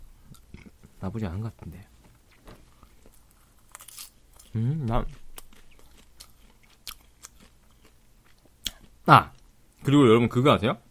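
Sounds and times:
speech: 1.0 - 2.0, 4.6 - 5.2, 9.1 - 10.8
chewing crunchy popcorn: 1.8 - 9.9.

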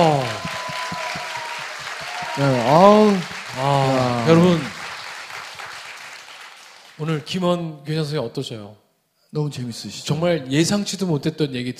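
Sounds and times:
audience applause: 0.0 - 7.0
speech: 2.4 - 4.7, 7.0 - 11.7.

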